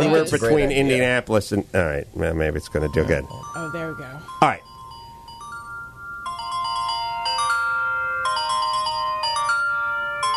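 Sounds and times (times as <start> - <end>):
low hum: 0.0 - 9.8
speech: 0.1 - 4.7
phone ringing with continuous electronic chime: 2.7 - 10.3.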